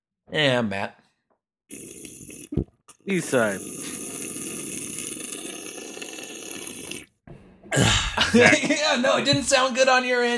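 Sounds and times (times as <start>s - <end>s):
speech: 0.3s - 1.0s, 1.7s - 4.0s, 7.7s - 10.3s
big gulp of a hot beverage: 1.7s - 8.2s
laughter: 7.8s - 9.6s.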